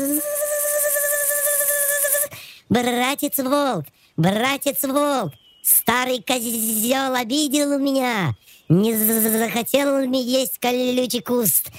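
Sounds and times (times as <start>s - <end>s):
voice imitating a mosquito whine: 0.0s - 2.3s, 8.8s - 9.6s
speech: 2.7s - 11.7s.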